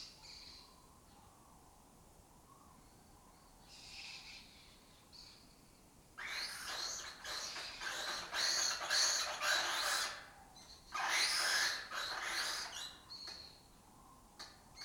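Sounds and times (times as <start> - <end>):
lesser kestrels rasping calls: 6.2 - 13.1.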